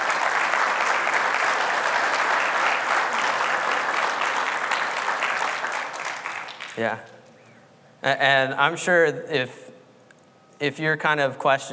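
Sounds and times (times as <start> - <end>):
audience applause: 0.0 - 6.9
speech: 6.8 - 7.1, 8.0 - 9.6, 10.6 - 11.7.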